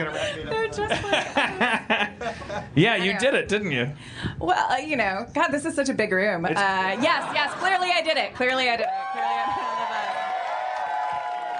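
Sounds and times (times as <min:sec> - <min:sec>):
speech: 0:00.0 - 0:09.7
crowd whooping at a live comedy show: 0:08.8 - 0:11.5
audience clapping at a live comedy show: 0:08.9 - 0:11.5.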